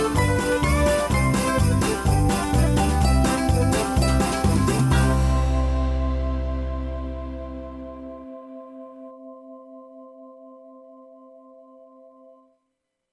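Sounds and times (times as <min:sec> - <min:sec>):
square dance backing track: 0:00.0 - 0:08.0.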